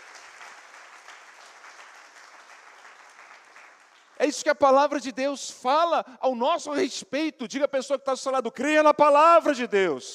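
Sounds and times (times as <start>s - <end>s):
audience applause: 0.0s - 4.2s
speech: 4.2s - 10.1s.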